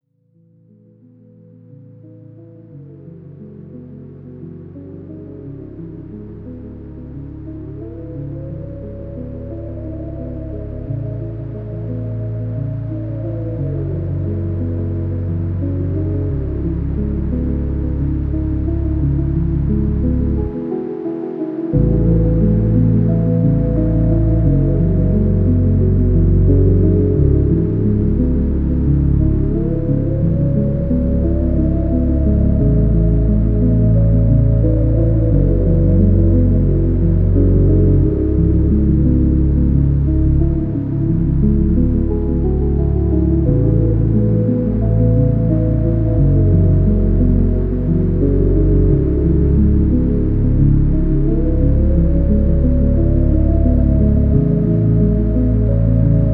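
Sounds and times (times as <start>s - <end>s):
slowed music with reverb: 0.7s - 56.3s.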